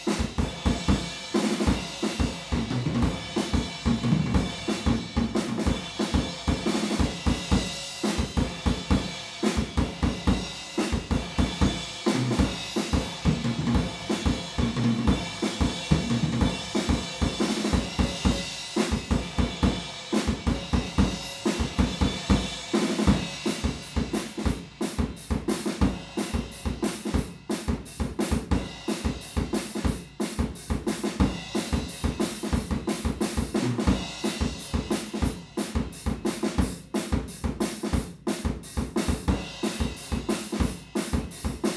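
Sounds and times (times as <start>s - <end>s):
drums recorded with omni PZM microphone: 0.0s - 41.7s.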